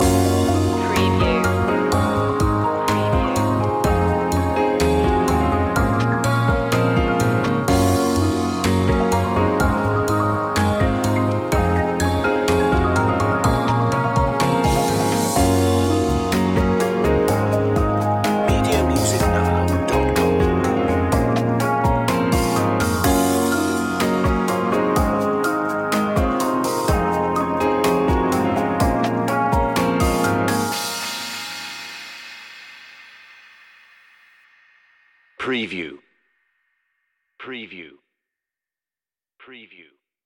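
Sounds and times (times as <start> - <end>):
thinking music loop ending without guitar: 0.0 - 31.6.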